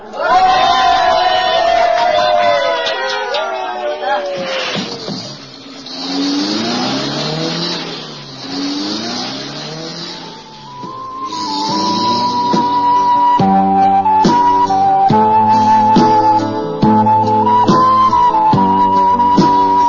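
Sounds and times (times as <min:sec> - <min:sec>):
bus engine starting and speeding away: 0:00.9 - 0:19.8.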